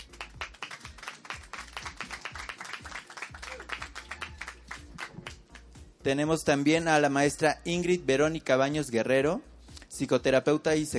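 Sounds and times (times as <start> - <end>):
audience applause: 0.0 - 5.4
speech: 6.0 - 10.9.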